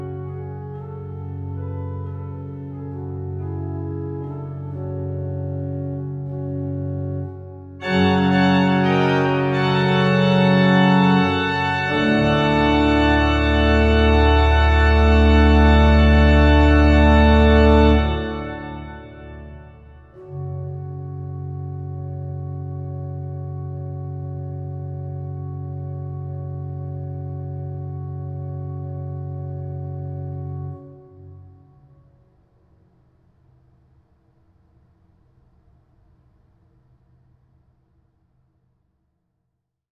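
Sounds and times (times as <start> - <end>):
organist playing an echo fantasia: 4.3 - 31.6.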